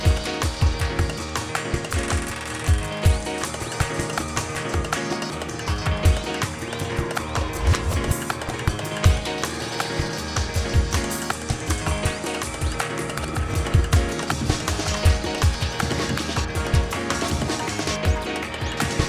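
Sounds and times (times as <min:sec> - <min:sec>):
rave piano music: 0:00.0 - 0:19.0.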